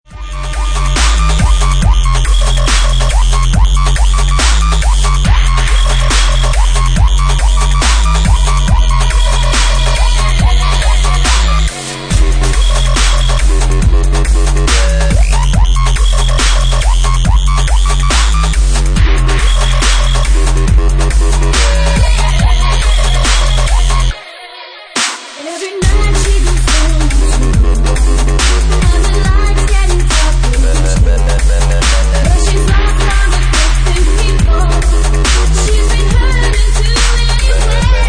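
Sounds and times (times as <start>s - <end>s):
dubstep remix: 0.1s - 38.0s.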